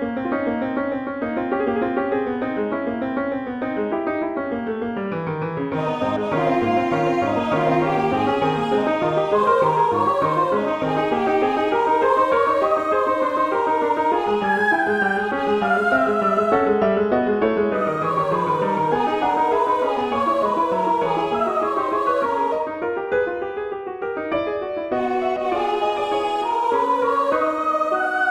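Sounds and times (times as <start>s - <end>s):
lively music piece: 0.1s - 28.3s.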